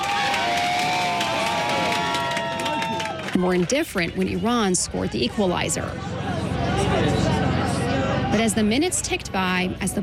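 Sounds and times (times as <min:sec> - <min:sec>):
scattered clapping: 0:00.0 - 0:04.4
anti-regime activists cheering a New Zealand goal shown on TV: 0:00.0 - 0:08.5
speech: 0:03.4 - 0:06.3, 0:08.4 - 0:10.0.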